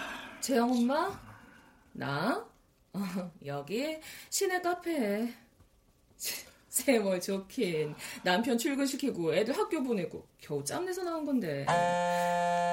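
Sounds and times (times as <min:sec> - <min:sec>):
speech: 0:00.6 - 0:01.2, 0:03.5 - 0:05.4, 0:06.2 - 0:12.7
phone ringing with musical ringtone: 0:11.7 - 0:12.7.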